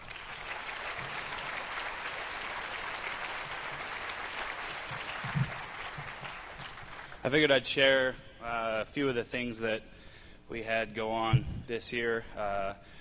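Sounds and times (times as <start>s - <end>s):
round of applause from audience: 0.0s - 7.2s
speech: 7.2s - 8.2s, 8.8s - 12.9s.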